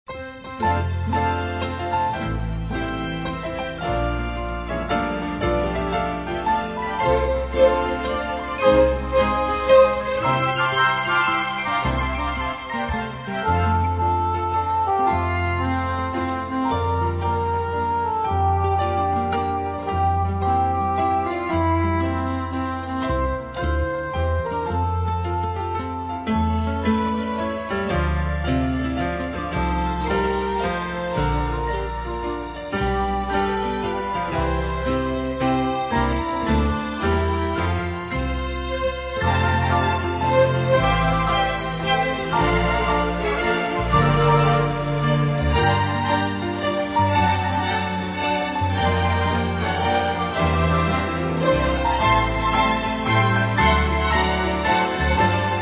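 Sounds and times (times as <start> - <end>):
orchestral strings: 0.0 - 55.6.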